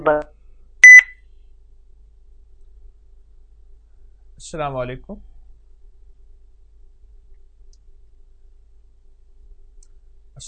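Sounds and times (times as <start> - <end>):
speech: 0.0 - 0.3, 4.4 - 5.3
electronic beep as a phone call ends: 0.8 - 1.2.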